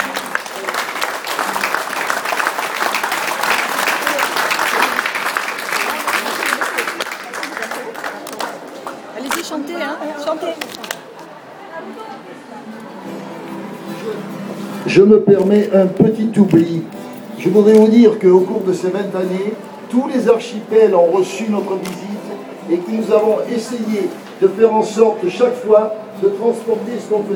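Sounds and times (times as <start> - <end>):
audience applause: 0.0 - 9.4
speech: 15.0 - 22.1, 22.7 - 27.3.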